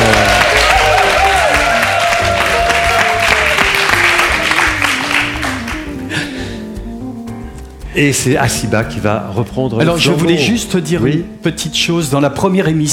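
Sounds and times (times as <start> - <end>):
audience applause: 0.0 - 6.0
speech: 8.0 - 12.9.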